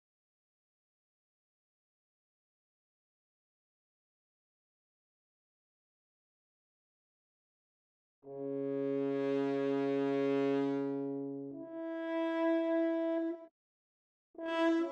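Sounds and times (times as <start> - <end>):
horn: 8.3 - 13.5, 14.4 - 14.8.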